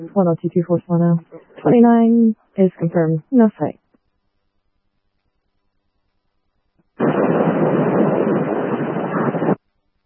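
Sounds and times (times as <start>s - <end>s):
radio static: 0.0s - 3.7s, 7.0s - 9.6s
speech: 0.0s - 3.8s.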